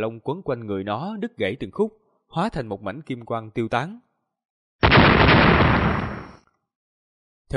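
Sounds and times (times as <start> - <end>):
speech: 0.0 - 4.0
explosions bursting: 4.8 - 6.4.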